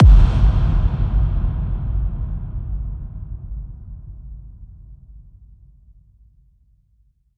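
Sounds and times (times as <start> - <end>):
impact: 0.0 - 5.0.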